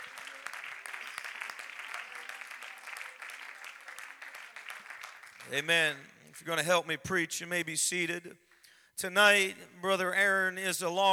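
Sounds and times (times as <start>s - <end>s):
audience clapping: 0.0s - 6.5s
speech: 5.5s - 11.1s.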